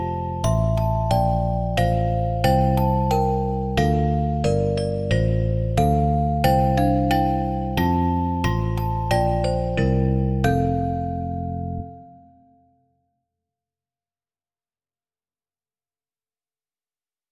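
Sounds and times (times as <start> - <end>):
celesta: 0.0 - 12.8.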